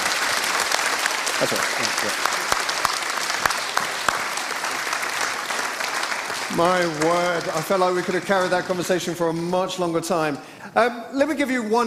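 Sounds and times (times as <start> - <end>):
crowd applauding: 0.0 - 9.9
speech: 1.4 - 2.4, 6.5 - 11.8.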